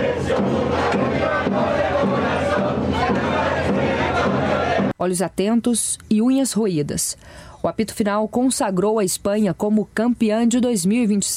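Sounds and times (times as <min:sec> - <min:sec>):
football fans chanting and cheering in a stadium: 0:00.0 - 0:05.0
speech: 0:05.0 - 0:11.3.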